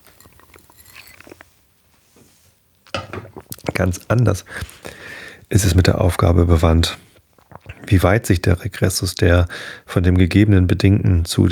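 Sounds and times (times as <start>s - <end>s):
person sipping water: 0.0s - 1.7s, 2.8s - 6.2s, 6.8s - 8.2s
speech: 3.8s - 7.0s, 7.9s - 11.5s.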